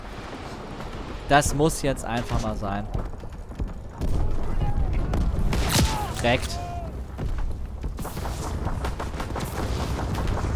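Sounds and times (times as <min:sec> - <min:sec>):
speech: 0:01.3 - 0:03.1, 0:06.2 - 0:06.6
continuous battle noise in a war video game: 0:04.0 - 0:07.1
shotgun firing in a war video game: 0:04.0 - 0:10.5.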